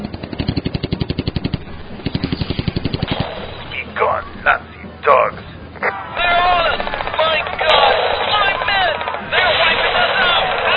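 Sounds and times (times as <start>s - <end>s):
aircraft engine roar: 0.0s - 10.7s
automatic gunfire from aircraft: 2.1s - 3.7s, 6.2s - 10.7s.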